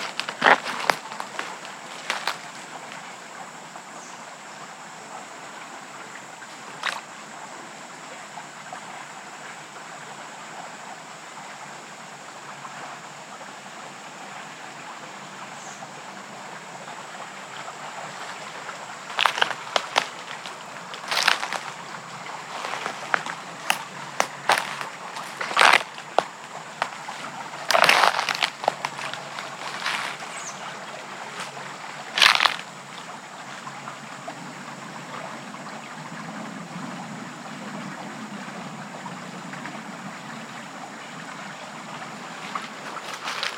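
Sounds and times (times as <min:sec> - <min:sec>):
clicks, snaps and rustles: 0:00.0 - 0:02.5, 0:06.7 - 0:07.0, 0:19.1 - 0:21.7, 0:22.5 - 0:27.0, 0:27.6 - 0:30.2, 0:32.2 - 0:32.6, 0:43.0 - 0:43.5
bubbling stream in West Michigan woods: 0:00.0 - 0:43.5.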